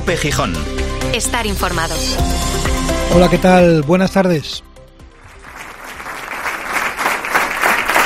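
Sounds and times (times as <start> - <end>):
speech: 0.1 - 4.7
applause at a memorial ceremony: 5.2 - 8.0.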